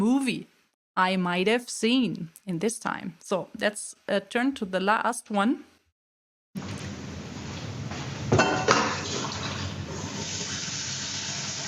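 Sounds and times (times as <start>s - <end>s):
speech: 0.0s - 5.7s
cooking sizzle: 6.6s - 11.6s.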